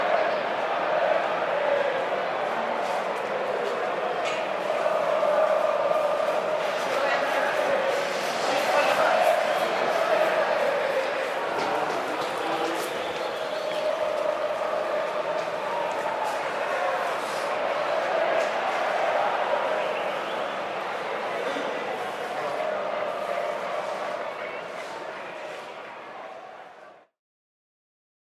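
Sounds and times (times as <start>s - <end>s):
upset football crowd chanting at a soccer game: 0.0s - 27.1s.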